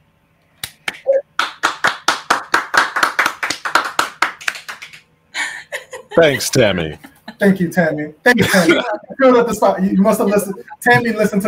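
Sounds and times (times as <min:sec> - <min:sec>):
audience round of applause: 0:01.4 - 0:05.0
laughter: 0:05.4 - 0:11.4
speech: 0:06.2 - 0:11.4.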